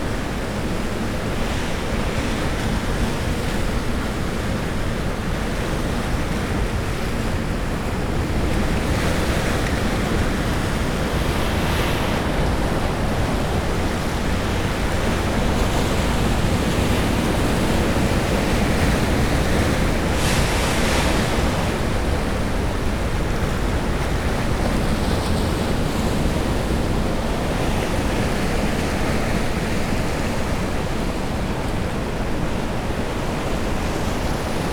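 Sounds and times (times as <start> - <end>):
ocean at Orzola: 0.0 - 34.7.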